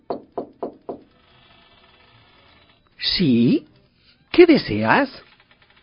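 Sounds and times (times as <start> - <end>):
knocking on a door: 0.0 - 1.0
speech: 3.1 - 3.7, 4.4 - 5.3.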